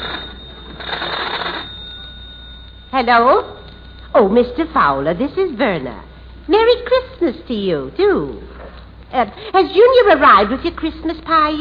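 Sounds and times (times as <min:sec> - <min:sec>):
telephone ringing with buzzy electric bell tone: 0:00.0 - 0:06.1
speech: 0:03.0 - 0:03.6, 0:04.2 - 0:08.5, 0:09.1 - 0:11.5.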